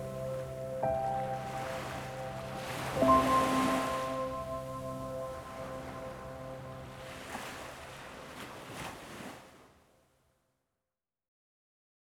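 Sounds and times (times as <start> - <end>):
piano: 0.0 - 8.3
sleeping ocean waves: 0.0 - 9.8.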